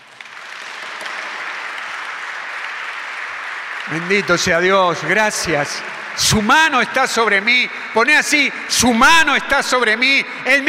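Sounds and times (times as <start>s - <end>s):
audience applause: 0.0s - 7.7s
speech: 3.9s - 10.6s.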